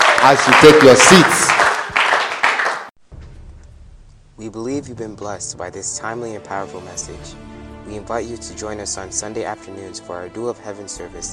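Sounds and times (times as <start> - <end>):
audience clapping: 0.0 - 3.0
speech: 0.2 - 1.5, 4.5 - 11.3.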